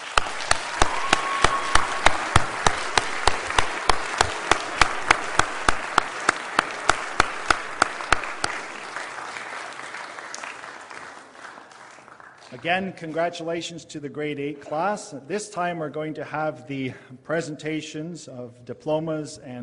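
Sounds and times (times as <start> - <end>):
audience applause for school staff: 0.0 - 12.6
speech: 12.6 - 19.6.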